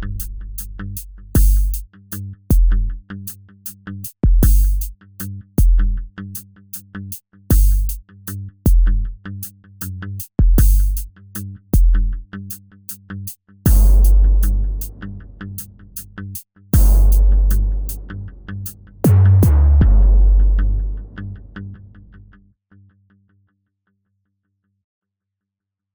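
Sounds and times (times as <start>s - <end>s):
punchy tuned hip hop bass drum hits: 0.0s - 1.8s, 2.5s - 3.0s, 4.2s - 4.9s, 5.6s - 6.0s, 7.5s - 8.0s, 8.7s - 9.0s, 10.4s - 11.1s, 11.8s - 12.1s, 13.7s - 16.0s, 16.8s - 21.8s.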